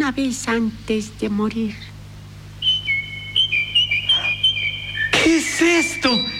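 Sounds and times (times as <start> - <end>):
low hum: 0.0 - 6.3
speech: 0.1 - 2.0, 5.6 - 6.3
nightingale singing from a window: 2.6 - 6.3.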